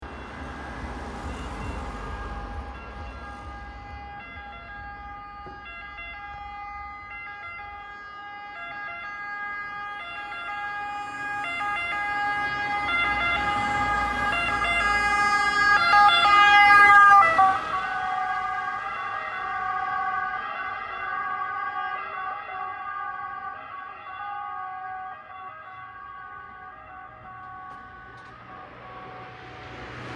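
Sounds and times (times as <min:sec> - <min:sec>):
ambulance driving past: 0:00.0 - 0:30.1.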